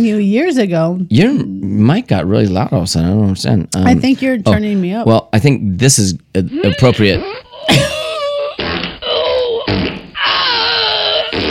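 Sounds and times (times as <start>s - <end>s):
speech: 0.0s - 7.9s
fart sound effect played from phone app: 8.6s - 11.4s.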